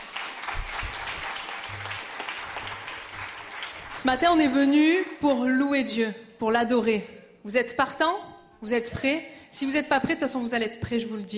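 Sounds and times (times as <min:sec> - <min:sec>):
audience applause: 0:00.0 - 0:05.2
speech: 0:04.0 - 0:11.3.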